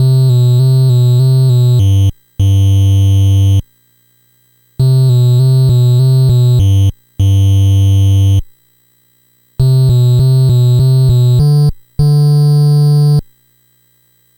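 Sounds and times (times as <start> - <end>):
NES chiptune bass: 0.0 - 3.6, 4.8 - 8.4, 9.6 - 13.2.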